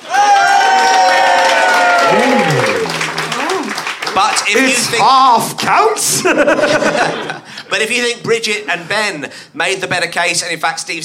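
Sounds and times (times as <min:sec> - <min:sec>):
audience applause: 0:00.0 - 0:05.3
laughter: 0:02.0 - 0:03.8, 0:05.8 - 0:08.0
speech: 0:04.5 - 0:11.0.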